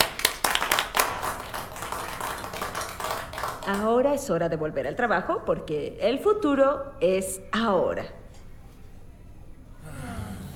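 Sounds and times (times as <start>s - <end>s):
round of applause: 0.0s - 3.9s
speech: 3.7s - 8.2s.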